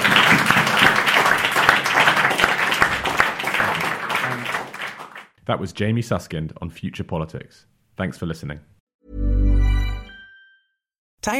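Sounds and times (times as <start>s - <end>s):
audience applause for a guest: 0.0s - 5.3s
speech: 5.5s - 9.2s.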